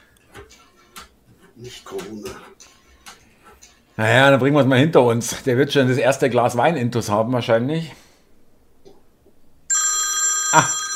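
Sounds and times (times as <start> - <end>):
speech: 1.6 - 2.6, 4.0 - 8.0
telephone ringing: 9.7 - 10.9.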